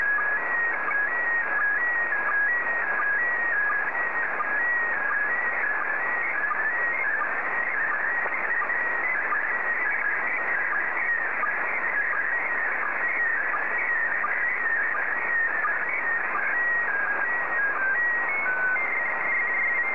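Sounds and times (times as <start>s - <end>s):
PD90 slow-scan television signal: 0.0s - 19.8s.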